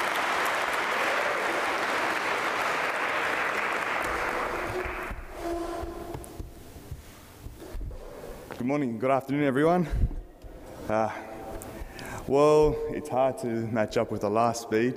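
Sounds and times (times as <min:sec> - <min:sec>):
audience applause: 0:00.0 - 0:05.6
speech: 0:08.7 - 0:10.1, 0:10.9 - 0:11.3, 0:12.3 - 0:14.9.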